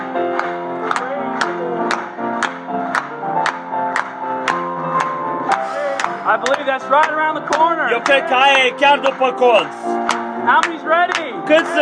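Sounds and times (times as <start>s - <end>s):
audience applauding: 0.0s - 11.8s
speech: 6.3s - 11.8s.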